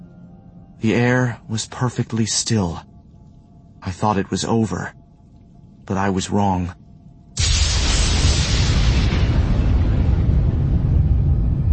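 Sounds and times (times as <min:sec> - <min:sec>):
speech: 0:00.8 - 0:02.9, 0:03.8 - 0:05.0, 0:05.9 - 0:06.8
lightning strike: 0:07.4 - 0:11.7
thunder rumbling: 0:07.4 - 0:11.7.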